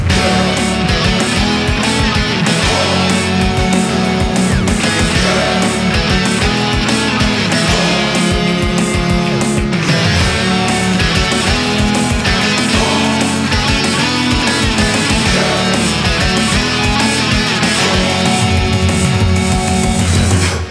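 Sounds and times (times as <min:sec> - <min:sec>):
looping forest level game music: 0:00.1 - 0:20.4.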